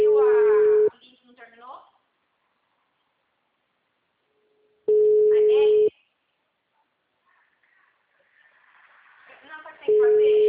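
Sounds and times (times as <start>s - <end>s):
telephone busy tone on a WhatsApp call: 0.0s - 0.9s, 4.9s - 5.9s, 9.9s - 10.4s.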